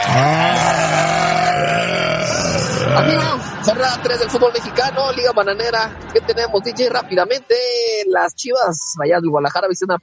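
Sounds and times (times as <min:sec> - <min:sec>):
sheep bleating: 0:00.0 - 0:03.2
speech: 0:00.1 - 0:00.4, 0:03.0 - 0:10.0.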